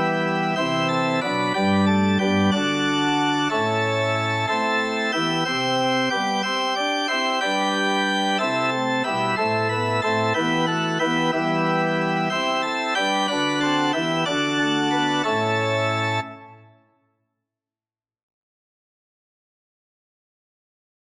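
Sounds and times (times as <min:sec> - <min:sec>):
organ playing: 0:00.0 - 0:16.7.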